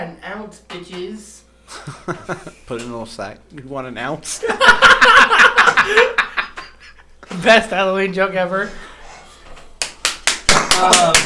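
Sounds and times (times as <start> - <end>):
speech: 0.0 - 6.2, 7.3 - 8.9, 10.8 - 11.2
laughter: 1.7 - 2.7, 4.3 - 7.2
hand clapping: 9.8 - 11.2.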